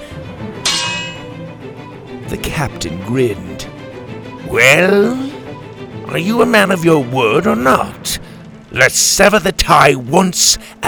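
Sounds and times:
swords clashing: 0.6s - 1.4s
speech: 2.3s - 3.6s, 4.5s - 5.3s, 6.1s - 10.8s.

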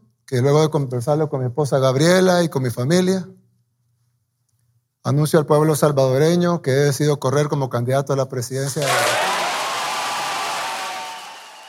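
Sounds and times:
speech: 0.3s - 3.4s, 5.0s - 9.3s
crowd applause at political rally: 8.8s - 11.6s.

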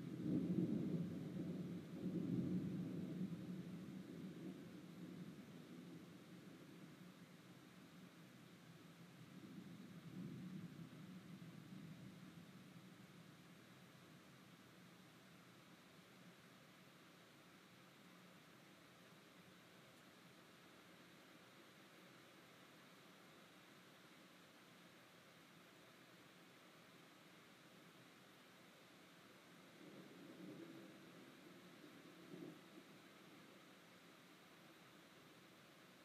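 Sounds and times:
thunder rolling in a storm: 0.0s - 7.2s, 9.2s - 13.4s, 29.7s - 33.5s
faint steady hiss: 0.0s - 36.0s.

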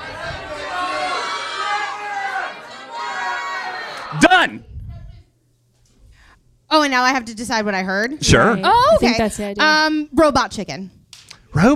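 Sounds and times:
audience shouting out answers together: 0.0s - 4.6s
speech: 4.1s - 4.7s, 6.7s - 11.0s, 11.6s - 11.7s.

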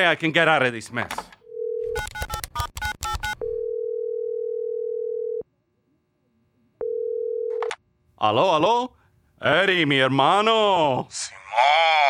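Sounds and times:
speech: 0.0s - 1.3s, 8.2s - 12.0s
telephone dial tone: 1.4s - 5.4s, 6.8s - 7.8s.

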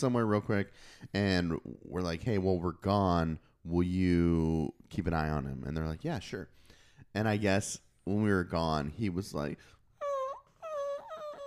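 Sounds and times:
speech: 0.0s - 9.8s
person imitating dog whining at the door: 10.0s - 11.4s.

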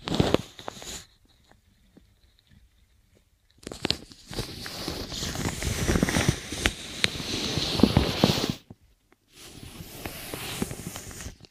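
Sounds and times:
inner ear cleaning crackling and scratching: 3.7s - 8.7s, 9.4s - 11.5s.

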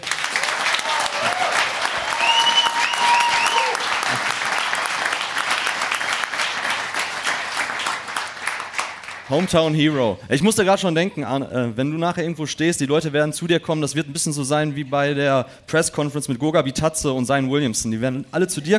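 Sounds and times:
audience whoops and cheers: 0.0s - 5.3s
live audience applause: 0.0s - 9.8s
speech: 9.3s - 18.7s.

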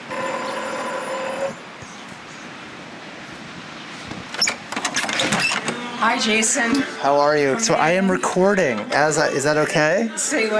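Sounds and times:
door buzzer ringing: 0.0s - 6.3s
faint clicks and rattles: 0.0s - 6.3s
low outdoor rumble: 0.0s - 6.7s
speech: 6.0s - 10.5s.

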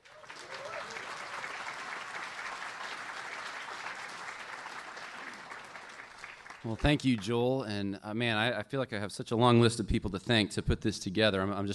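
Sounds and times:
audience applause: 0.0s - 7.4s
speech: 6.6s - 11.7s.

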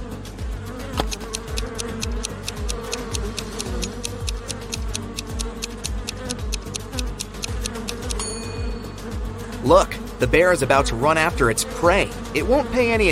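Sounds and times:
swarm of angry bees buzzing: 0.0s - 13.0s
rapid sharp ticks: 1.0s - 8.2s
speech: 9.7s - 13.0s.

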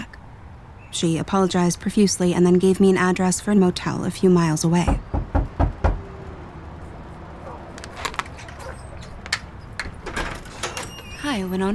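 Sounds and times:
speech: 0.9s - 5.2s, 11.5s - 11.7s
knocking on a door: 4.9s - 6.0s.

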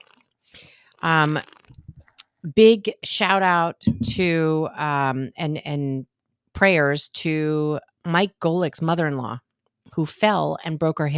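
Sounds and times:
person drinking water: 0.0s - 2.2s
speech: 1.0s - 1.6s, 2.4s - 11.1s.

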